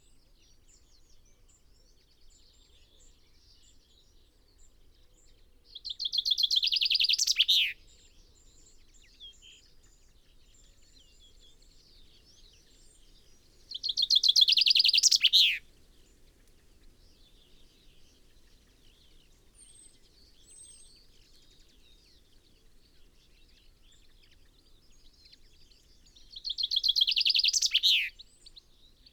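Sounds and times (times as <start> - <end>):
common chaffinch Fringilla coelebs singing: 5.9 - 7.8, 11.5 - 29.1.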